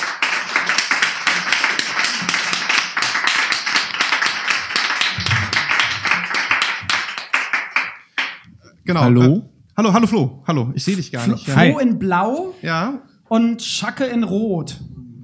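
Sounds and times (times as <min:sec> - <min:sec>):
audience applause: 0:00.0 - 0:08.4
speech: 0:08.9 - 0:15.0.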